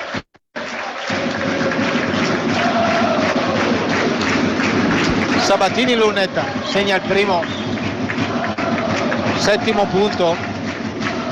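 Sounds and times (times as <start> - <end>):
crowd applauding player leaving court: 0.0 - 11.2
speech: 5.5 - 7.6, 9.4 - 10.5.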